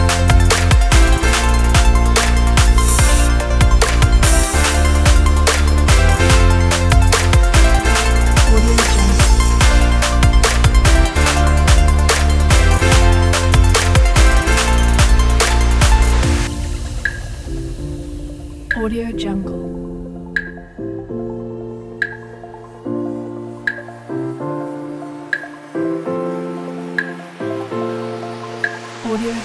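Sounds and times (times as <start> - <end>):
future bass music: 0.0 - 20.8, 24.7 - 29.4.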